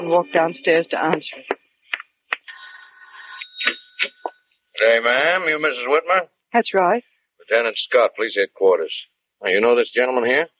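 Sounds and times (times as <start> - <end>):
speech: 0.1 - 1.5, 4.8 - 10.5
doorbell ringing: 2.5 - 4.6.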